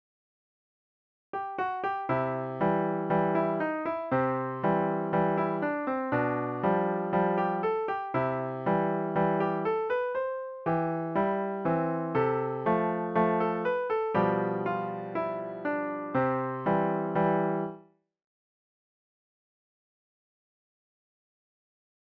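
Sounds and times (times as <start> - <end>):
piano: 1.4 - 17.9.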